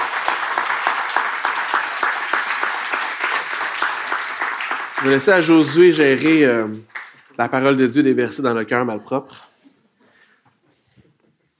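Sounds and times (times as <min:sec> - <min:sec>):
audience applause: 0:00.0 - 0:07.5
speech: 0:05.0 - 0:09.5.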